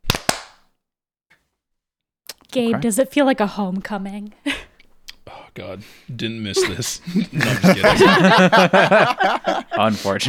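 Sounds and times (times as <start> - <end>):
single hand clap for audio sync: 0.0 - 0.7
speech: 2.5 - 4.5, 5.6 - 10.2
laughter: 6.1 - 10.2.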